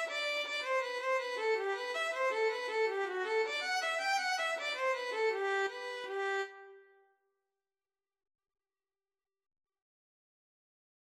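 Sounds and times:
violin playing a hornpipe: 0.0s - 6.8s.

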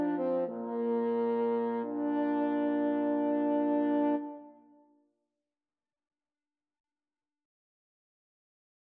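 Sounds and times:
French horn trio: 0.0s - 4.5s.

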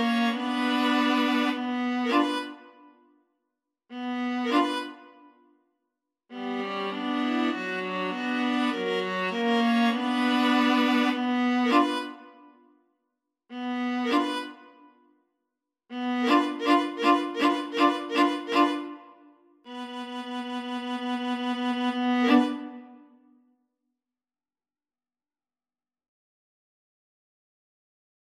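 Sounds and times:
viola trio playing: 0.0s - 2.6s, 4.0s - 5.0s, 6.3s - 12.2s, 16.0s - 19.0s, 19.7s - 22.9s.

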